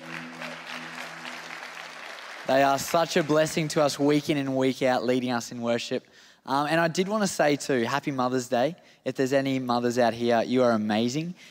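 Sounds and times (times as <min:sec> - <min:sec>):
audience clapping: 0:00.0 - 0:04.4
speech: 0:02.5 - 0:11.4.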